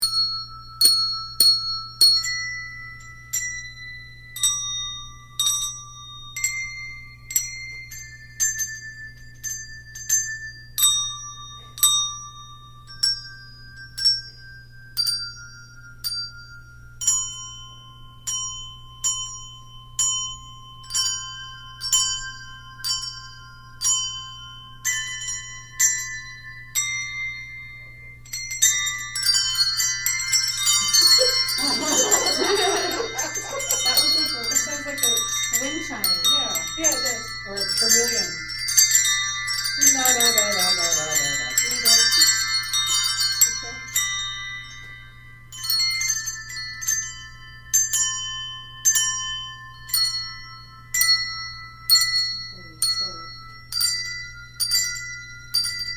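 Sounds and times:
bells ringing: 0.0s - 55.9s
laughter: 30.8s - 35.2s.

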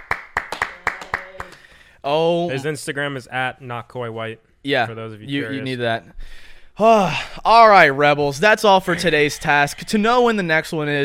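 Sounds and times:
audience clapping: 0.0s - 1.7s
speech: 2.0s - 11.0s.

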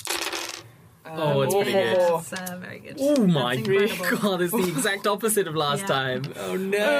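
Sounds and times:
dice clattering across a hard surface: 0.0s - 0.7s
speech: 1.1s - 6.9s.

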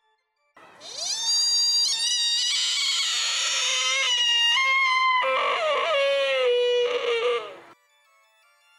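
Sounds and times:
buck deer's piercing mournful cry: 0.8s - 7.8s.

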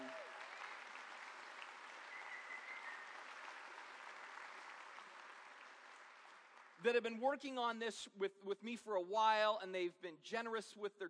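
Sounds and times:
audience applause: 0.0s - 6.8s
speech: 6.8s - 11.0s.

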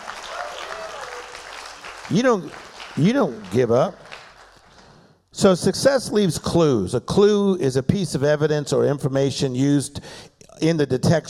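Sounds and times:
church congregation clapping: 0.0s - 5.1s
church congregation shouting: 0.2s - 1.4s
speech: 2.1s - 4.0s, 5.4s - 11.2s.

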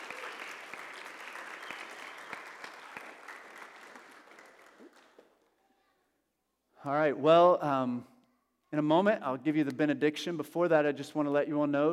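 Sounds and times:
church congregation applauding during a morning service to welcome a new member: 0.0s - 5.5s
speech: 6.8s - 8.1s, 8.7s - 11.9s.

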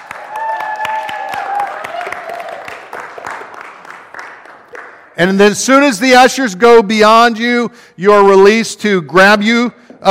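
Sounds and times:
audience clapping: 0.0s - 5.4s
speech: 5.2s - 10.0s.

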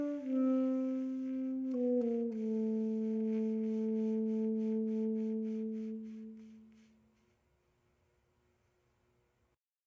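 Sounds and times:
reed instrument: 0.0s - 7.0s.

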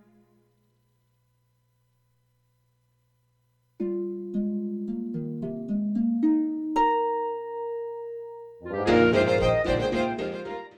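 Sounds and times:
lullaby: 3.8s - 10.7s.

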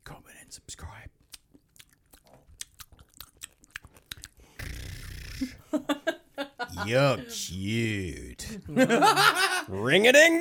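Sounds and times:
person chewing peanut M&Ms ASMR style: 1.2s - 5.5s
laughter: 5.7s - 7.4s, 8.5s - 9.9s
speech: 6.8s - 10.3s.

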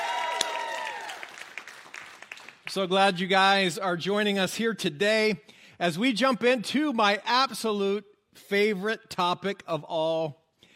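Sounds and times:
church congregation in Bangor applauding during a service: 0.0s - 2.9s
speech: 2.8s - 10.4s.

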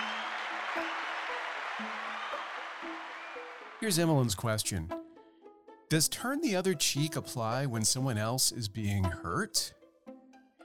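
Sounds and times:
round of applause: 0.0s - 4.5s
speech: 1.8s - 2.1s, 3.8s - 5.0s, 5.9s - 9.8s.

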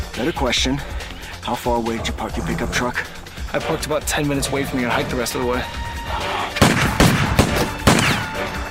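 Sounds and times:
speech: 0.2s - 6.6s
gunfire: 6.6s - 8.5s.

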